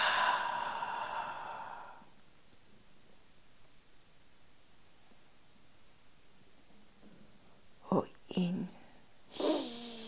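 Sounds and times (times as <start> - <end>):
slow exhalation during breathing exercise: 0.0 - 2.1, 9.3 - 10.0.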